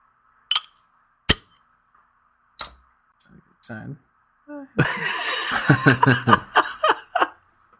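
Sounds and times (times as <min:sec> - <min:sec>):
clicks from opening a bottle of porter beer: 0:00.5 - 0:00.7
speech: 0:03.2 - 0:06.6
laughter: 0:04.8 - 0:07.4.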